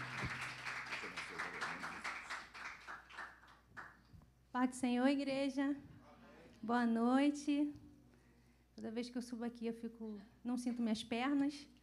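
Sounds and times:
audience applause: 0.0s - 3.6s
speech: 4.5s - 5.9s, 6.6s - 7.8s, 8.8s - 11.8s.

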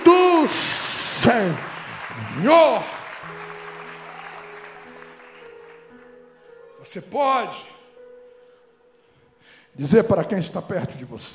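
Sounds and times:
crowd clapping: 0.6s - 6.3s
speech: 1.2s - 3.4s, 6.8s - 7.7s, 9.8s - 11.3s.

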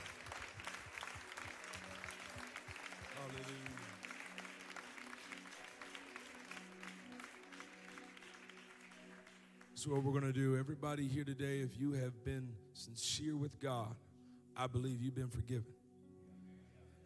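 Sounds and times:
audience clapping hands: 0.0s - 10.4s
speech: 3.2s - 3.9s, 9.8s - 15.8s.

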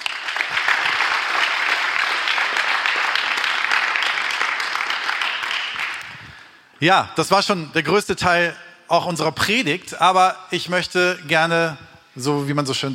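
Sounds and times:
audience applause: 0.0s - 6.3s
speech: 6.8s - 12.9s.

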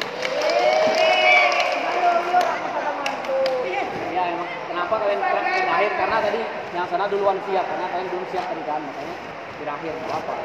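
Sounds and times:
group clapping hands: 0.0s - 3.9s
speech: 4.9s - 10.4s.

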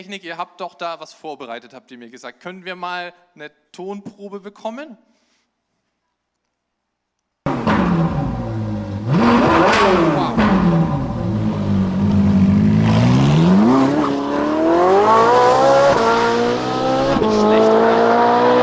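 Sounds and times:
speech: 0.0s - 5.1s
powerful sports car engine revving: 7.5s - 18.6s.

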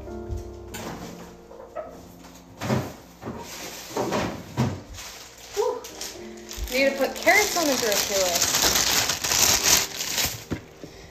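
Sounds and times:
refrigerator door opening and thumping shut: 0.1s - 4.9s
rustle of rummaging through refrigerator contents: 2.9s - 10.8s
speech: 6.8s - 8.9s.

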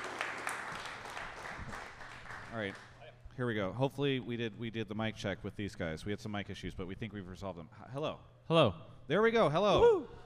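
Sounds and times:
round of applause: 0.0s - 2.8s
speech: 2.5s - 10.2s.

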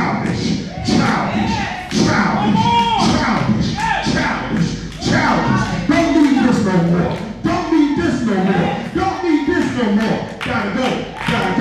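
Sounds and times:
crowd noise: 0.0s - 11.5s
heavy stamping thuds: 0.1s - 5.6s
man talking: 2.2s - 11.5s.

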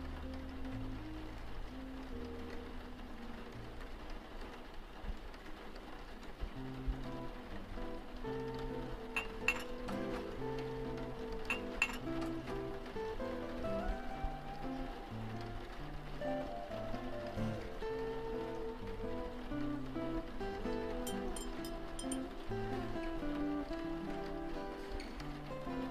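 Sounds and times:
jazz with walking bass line and mellow chords: 0.0s - 4.0s, 6.6s - 25.9s
soft rain hiss: 0.0s - 25.9s
bright cup clinks: 9.2s - 9.7s, 21.4s - 22.2s.

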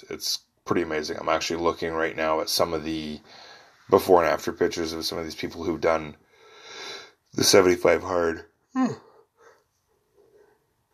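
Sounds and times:
speech: 0.0s - 6.2s, 7.3s - 9.1s
person yawning: 8.8s - 9.2s.

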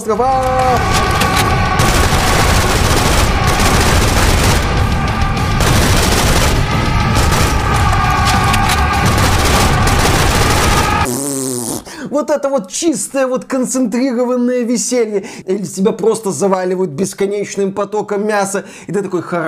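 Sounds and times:
speech: 0.0s - 1.1s, 12.2s - 19.4s
video game Kalashnikov rifle gunfire: 0.8s - 11.1s.

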